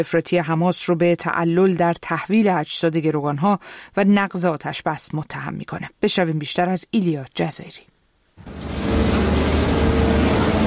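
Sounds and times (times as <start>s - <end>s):
speech: 0.0s - 9.2s
loaders working in search operation: 8.4s - 10.6s.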